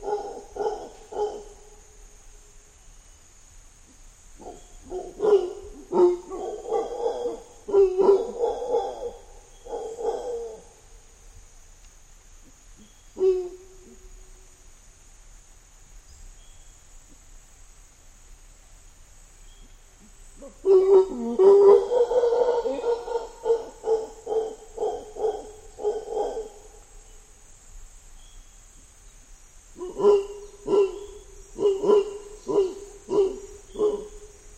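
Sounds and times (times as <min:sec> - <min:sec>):
mantled howler monkey: 0:00.0 - 0:01.8, 0:04.4 - 0:10.9, 0:20.0 - 0:27.0, 0:29.8 - 0:34.5.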